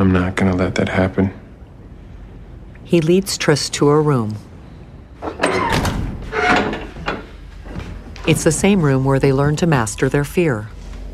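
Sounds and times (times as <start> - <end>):
speech: 0.0 - 1.4, 2.9 - 4.5, 8.2 - 10.8
steady low noise: 0.0 - 11.1
door shutting: 5.2 - 8.0.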